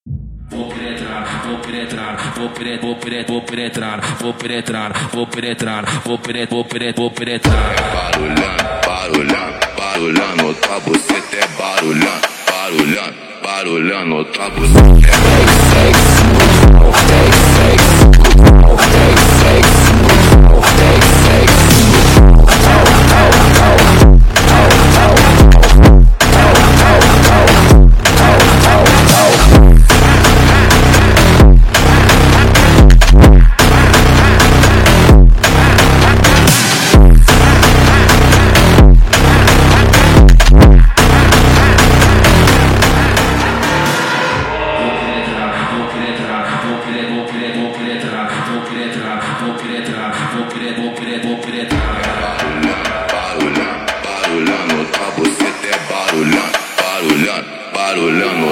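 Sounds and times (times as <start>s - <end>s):
brutal funk music: 7.4s - 13.0s, 14.5s - 46.0s, 51.7s - 57.3s.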